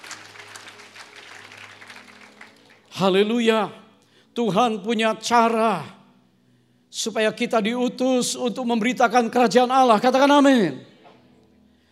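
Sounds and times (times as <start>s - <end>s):
audience applause: 0.0s - 2.9s
speech: 3.0s - 3.8s, 4.4s - 6.0s, 6.9s - 10.9s.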